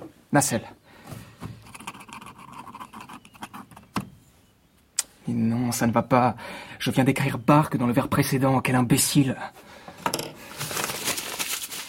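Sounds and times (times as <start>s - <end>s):
speech: 0.3s - 0.8s, 5.7s - 9.7s
whole page of paper crumpled into a ball: 10.4s - 11.8s.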